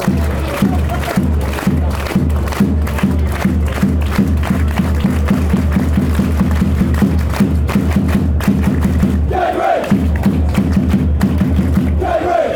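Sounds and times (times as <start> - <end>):
drums: 0.0 - 12.2
fans chanting: 9.2 - 10.5, 11.7 - 12.5.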